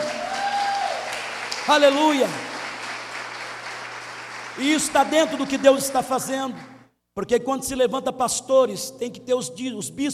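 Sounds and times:
audience applause: 0.0 - 6.7
speech: 1.7 - 2.5, 4.6 - 10.1.

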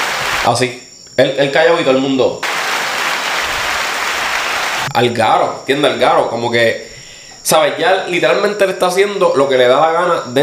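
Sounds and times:
applause sound effect from button: 0.0 - 0.6, 2.4 - 4.9
speech: 0.4 - 2.5, 5.0 - 10.4.

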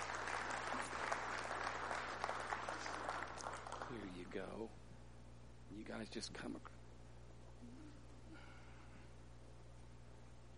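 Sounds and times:
audience applause welcoming people introduced at a ceremony: 0.0 - 4.3
speech: 3.9 - 4.9, 5.7 - 6.8.

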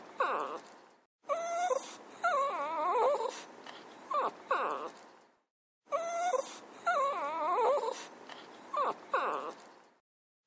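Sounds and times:
dog whimpering: 0.0 - 0.7, 1.3 - 5.0, 5.9 - 9.7.

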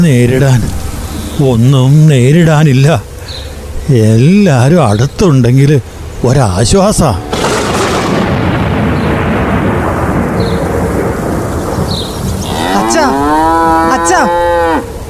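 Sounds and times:
speech: 0.0 - 7.3
steady roar of rain and wind during a storm: 0.0 - 15.0
cows lowing in a cowshed during a storm: 6.6 - 7.8, 12.4 - 15.0.

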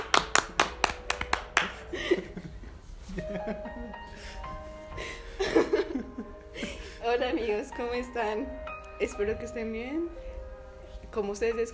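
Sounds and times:
clapping: 0.0 - 1.8
laughter: 1.9 - 4.0
speech: 3.3 - 4.4, 7.1 - 10.2, 11.1 - 11.7.

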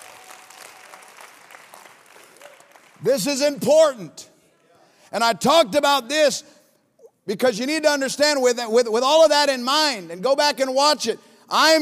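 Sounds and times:
congregation clapping in praise to God: 0.0 - 3.7
speech: 3.0 - 4.3, 5.1 - 6.6, 7.2 - 11.8.

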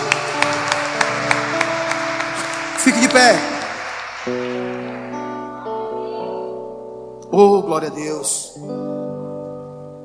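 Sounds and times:
audience applause: 0.0 - 6.0
speech: 3.2 - 3.5, 4.2 - 4.4, 7.4 - 9.1.

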